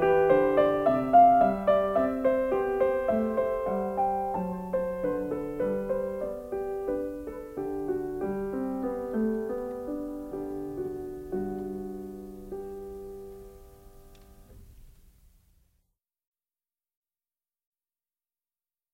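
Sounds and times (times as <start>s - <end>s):
keyboard aria: 0.0s - 14.3s.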